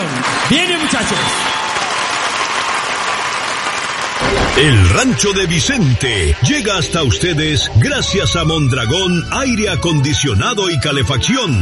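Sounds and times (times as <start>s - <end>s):
audience applause at a live music show: 0.0s - 9.1s
speech: 0.5s - 1.6s, 4.6s - 11.5s.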